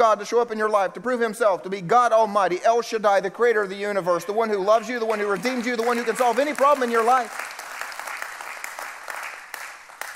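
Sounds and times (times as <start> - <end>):
speech: 0.0 - 7.5
crowd applause: 5.1 - 10.1.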